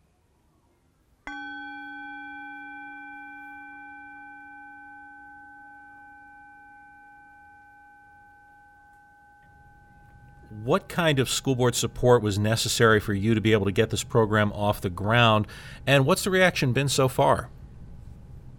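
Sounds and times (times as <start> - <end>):
meditation bell ringing: 1.3 - 13.4
speech: 10.6 - 17.6.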